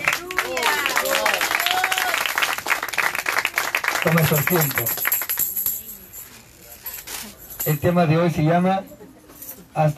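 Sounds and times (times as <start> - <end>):
audience clapping: 0.0 - 5.5
speech: 4.0 - 5.1, 7.6 - 9.0, 9.8 - 9.9.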